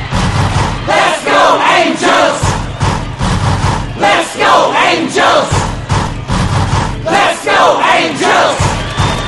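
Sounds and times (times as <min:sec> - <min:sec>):
choir singing: 0:00.1 - 0:09.2.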